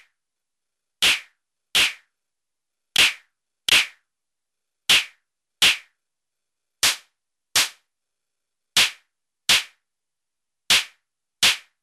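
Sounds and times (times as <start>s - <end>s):
Modor DR2 drum machine claps: 1.0s - 2.1s, 3.0s - 4.0s, 4.9s - 5.9s, 6.8s - 7.8s, 8.8s - 9.8s, 10.7s - 11.8s.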